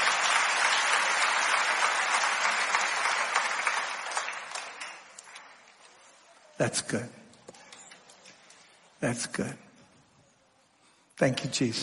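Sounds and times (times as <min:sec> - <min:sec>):
audience clapping: 0:00.0 - 0:06.1
speech: 0:06.6 - 0:07.2, 0:09.0 - 0:09.6, 0:11.2 - 0:11.8.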